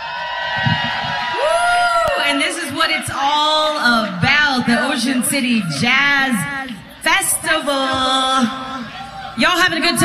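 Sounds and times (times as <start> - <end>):
audience cheering and whooping for band: 0.0 - 3.4
speech: 2.8 - 8.8, 9.4 - 10.0.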